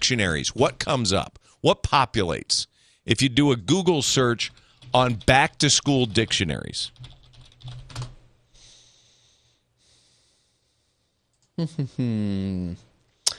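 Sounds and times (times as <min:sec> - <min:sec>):
speech: 0:00.1 - 0:08.1, 0:11.6 - 0:12.9
fast typing on a computer keyboard: 0:04.3 - 0:08.2.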